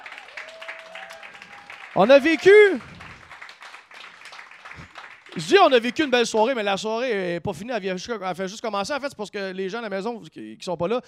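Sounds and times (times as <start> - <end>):
audience applause: 0.0 - 6.2
speech: 2.0 - 2.9, 5.4 - 11.0.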